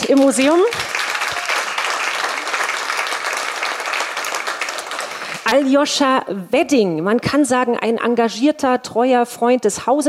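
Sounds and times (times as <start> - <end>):
audience applause: 0.0 - 5.5
speech: 0.1 - 0.9, 5.5 - 10.0.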